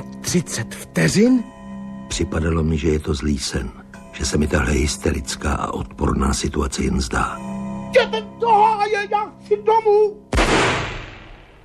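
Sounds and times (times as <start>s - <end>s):
speech: 0.3s - 10.2s
revolver shot at midnight: 10.4s - 11.5s.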